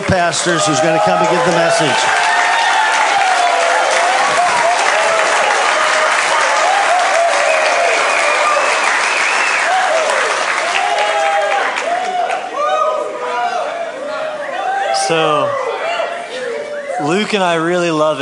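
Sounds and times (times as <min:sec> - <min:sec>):
large audience applause: 0:00.0 - 0:13.7
speech: 0:00.1 - 0:02.4, 0:15.1 - 0:15.6, 0:17.0 - 0:18.2
scattered cheers and whoops: 0:00.4 - 0:17.1.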